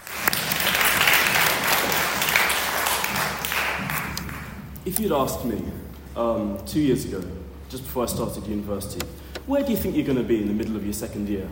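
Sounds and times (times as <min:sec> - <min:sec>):
audience round of applause: 0:00.0 - 0:04.6
speech: 0:04.9 - 0:11.5.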